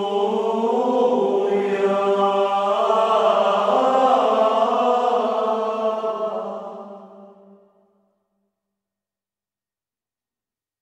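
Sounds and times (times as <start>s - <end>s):
choir singing an alleluia: 0.0s - 7.6s.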